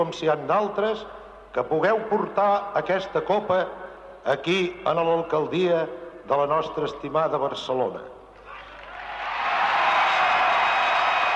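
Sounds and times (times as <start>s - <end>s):
speech: 0.0s - 8.2s
large crowd applauding: 8.6s - 11.3s.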